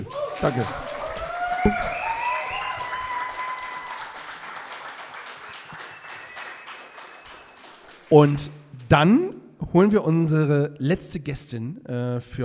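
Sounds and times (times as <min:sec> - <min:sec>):
speech: 0:00.0 - 0:00.9, 0:01.6 - 0:02.0, 0:08.1 - 0:12.4
audience applause: 0:00.0 - 0:08.4.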